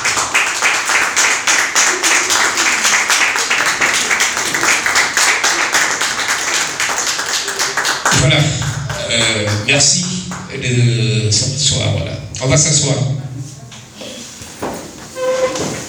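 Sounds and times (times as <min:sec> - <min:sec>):
audience applause and ovation welcoming an author: 0:00.0 - 0:10.7
speech: 0:09.8 - 0:13.5.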